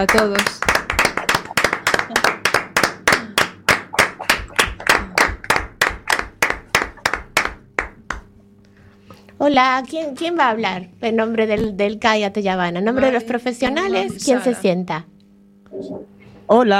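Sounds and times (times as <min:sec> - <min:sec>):
speech: 0:00.0 - 0:00.6, 0:09.4 - 0:15.1, 0:15.7 - 0:16.7
applause: 0:00.0 - 0:08.3.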